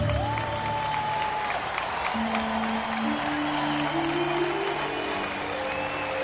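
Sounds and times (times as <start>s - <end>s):
crowd applauding in a public square: 0.0s - 6.2s
sustained musical tones: 2.2s - 6.2s.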